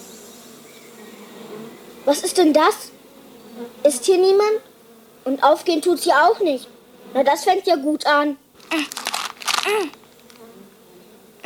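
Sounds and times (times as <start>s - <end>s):
Maya the Bee buzzing: 0.0s - 11.4s
speech: 2.0s - 2.9s, 3.6s - 9.0s, 9.6s - 10.0s.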